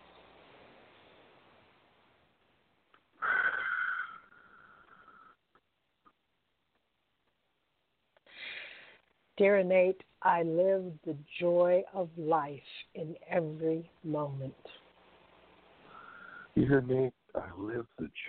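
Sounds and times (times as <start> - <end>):
deep breath during a guided affirmation meditation: 3.2 - 5.4, 8.2 - 9.1, 15.8 - 16.6
speech: 9.4 - 14.8, 16.6 - 18.2.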